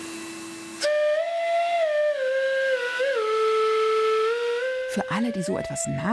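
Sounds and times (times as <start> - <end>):
vacuum cleaner motor drone: 0.0 - 1.2
old vacuum cleaner played as a flute: 0.0 - 6.1
speech: 5.0 - 6.1.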